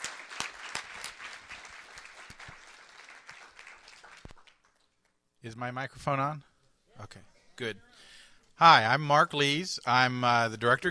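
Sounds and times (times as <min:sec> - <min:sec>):
audience applause welcoming a speaker: 0:00.0 - 0:04.9
speech: 0:05.4 - 0:10.9.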